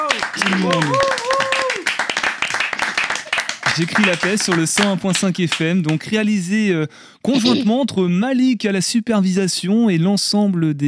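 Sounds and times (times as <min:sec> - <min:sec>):
group of children clapping: 0:00.0 - 0:06.1
speech: 0:00.4 - 0:01.0, 0:03.8 - 0:10.8.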